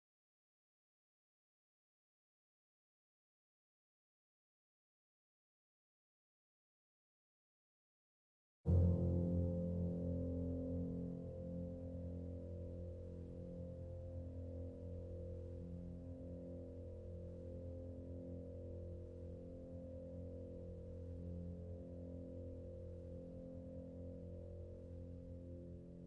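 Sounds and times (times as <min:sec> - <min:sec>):
piano underscore: 0:08.7 - 0:26.0.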